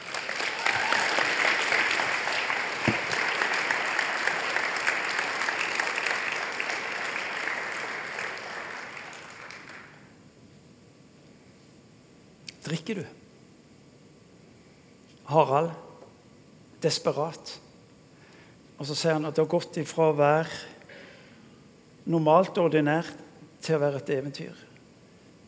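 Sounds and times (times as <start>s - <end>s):
audience applause: 0.0s - 10.1s
speech: 12.9s - 13.2s, 15.3s - 15.8s, 16.8s - 17.6s, 18.8s - 20.7s, 22.1s - 24.7s.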